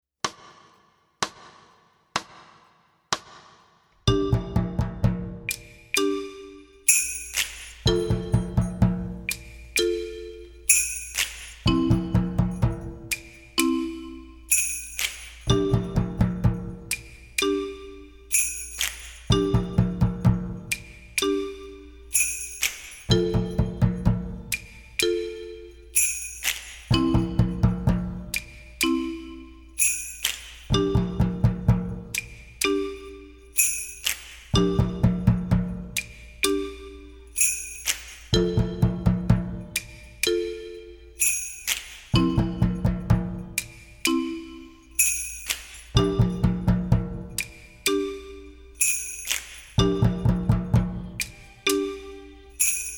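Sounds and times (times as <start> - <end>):
student percussion: 0.2 - 52.9.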